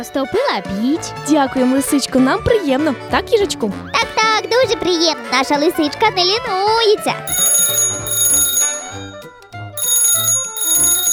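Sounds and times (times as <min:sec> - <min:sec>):
speech: 0:00.0 - 0:07.5
telephone ringing: 0:07.3 - 0:11.1.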